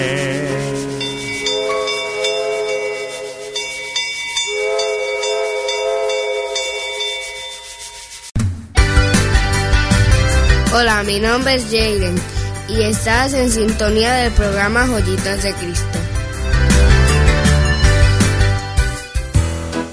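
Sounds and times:
train rolling along with a grinding rumble: 0.0s - 7.6s, 9.1s - 19.3s
sustained multi-tone train whistle: 0.4s - 7.4s
speech: 10.8s - 16.0s.

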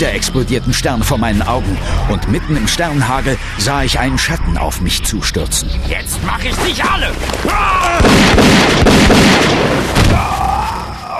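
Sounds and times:
sustained tonal hum: 0.0s - 7.8s
speech: 0.0s - 10.4s
rapid gunshots firing silver bullets: 8.0s - 10.0s.

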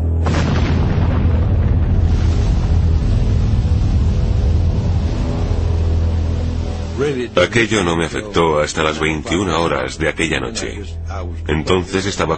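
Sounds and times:
explosion in the air: 0.2s - 7.6s
speech: 7.1s - 12.3s.

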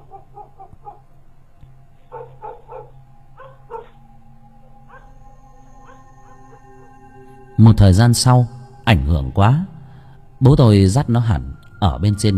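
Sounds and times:
dog barking loudly: 0.0s - 1.0s, 2.1s - 4.0s, 4.9s - 5.1s, 5.8s - 6.4s
dog howling: 0.0s - 1.1s, 2.1s - 4.0s, 4.8s - 7.1s
speech: 7.6s - 9.7s, 10.4s - 12.3s.

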